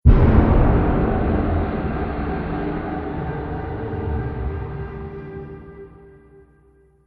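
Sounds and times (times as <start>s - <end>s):
atmospheric trailer drum accent: 0.0s - 5.6s.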